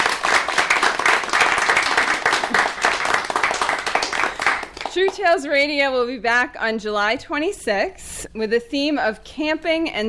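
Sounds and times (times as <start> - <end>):
studio audience applause: 0.0 - 5.2
speech: 5.0 - 10.0.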